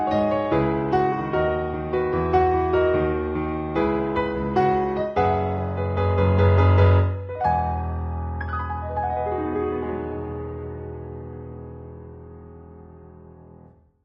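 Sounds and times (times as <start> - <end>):
piano piece: 0.0 - 14.0.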